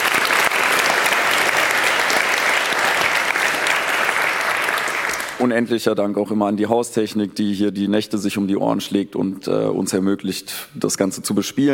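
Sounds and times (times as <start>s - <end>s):
audience applause: 0.0s - 5.5s
speech: 5.4s - 11.7s.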